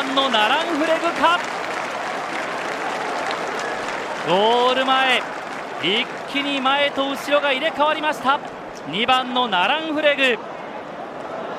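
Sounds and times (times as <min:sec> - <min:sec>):
speech: 0:00.0 - 0:01.6, 0:04.2 - 0:10.5
racecourse crowd applause: 0:00.0 - 0:08.4.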